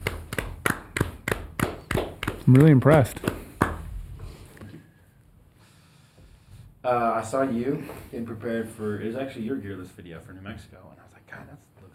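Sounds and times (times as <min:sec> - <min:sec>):
slow hand claps: 0:00.0 - 0:03.9
speech: 0:02.5 - 0:03.3, 0:06.9 - 0:11.7.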